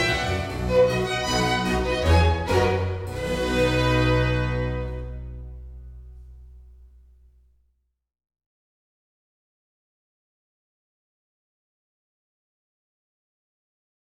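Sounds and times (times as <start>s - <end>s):
string orchestra: 0.0s - 6.2s
harpsichord: 0.0s - 7.0s.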